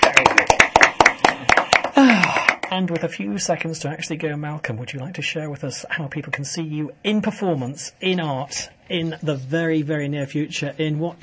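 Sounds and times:
few people giving a round of applause to a guest: 0:00.0 - 0:03.1
speech: 0:02.8 - 0:11.2.

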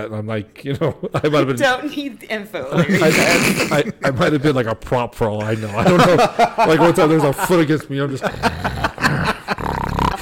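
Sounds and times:
speech: 0:00.0 - 0:08.8
laughter: 0:02.7 - 0:04.7, 0:05.4 - 0:10.2
voice imitating loud snoring: 0:08.3 - 0:10.2.

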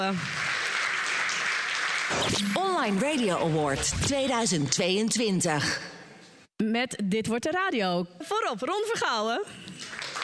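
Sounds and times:
speech: 0:00.0 - 0:00.5, 0:02.1 - 0:06.0, 0:06.6 - 0:09.8
audience applause: 0:00.0 - 0:03.6, 0:09.8 - 0:10.2.

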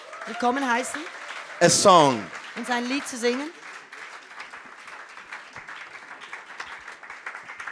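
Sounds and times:
audience clapping: 0:00.0 - 0:07.7
speech: 0:00.2 - 0:03.6.

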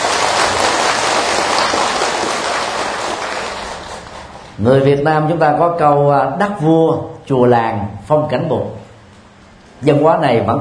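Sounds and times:
audience applause: 0:00.0 - 0:04.5
speech: 0:04.6 - 0:08.8, 0:09.8 - 0:10.5.

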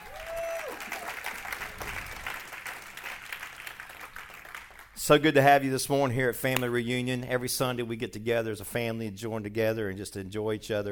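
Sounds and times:
audience clapping: 0:00.0 - 0:05.2
speech: 0:05.0 - 0:10.9.

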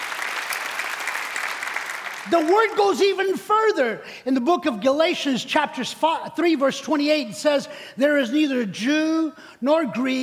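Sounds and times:
crowd clapping: 0:00.0 - 0:02.8
speech: 0:02.2 - 0:10.2.

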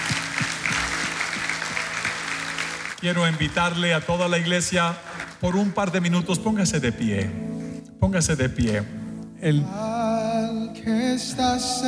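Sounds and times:
audience applause: 0:00.0 - 0:05.7
speech: 0:03.0 - 0:09.9, 0:10.8 - 0:11.8.

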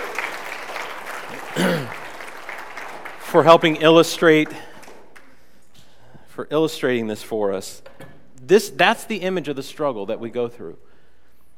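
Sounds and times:
church congregation applause for volunteers: 0:00.0 - 0:05.5
speech: 0:03.3 - 0:04.7, 0:06.4 - 0:10.9.

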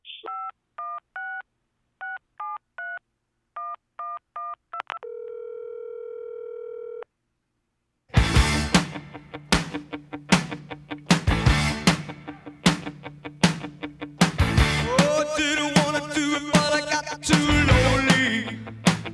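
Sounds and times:
steady telephone tone: 0:03.6 - 0:07.1
loud song with drums: 0:08.2 - 0:19.1.

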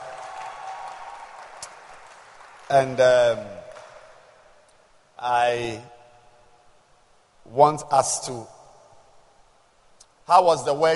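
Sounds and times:
audience hand clapping: 0:00.0 - 0:04.5
speech: 0:02.7 - 0:03.6, 0:05.2 - 0:05.9, 0:07.5 - 0:08.6, 0:10.3 - 0:10.9.

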